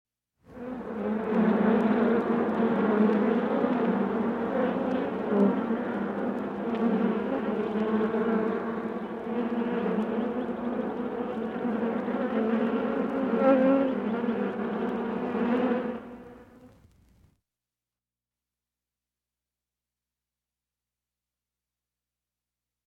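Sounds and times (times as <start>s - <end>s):
swarm of bees buzzing: 0.5s - 16.8s.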